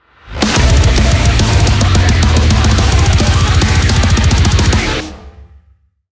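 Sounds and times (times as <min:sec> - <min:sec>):
transition sound: 0:00.0 - 0:05.6.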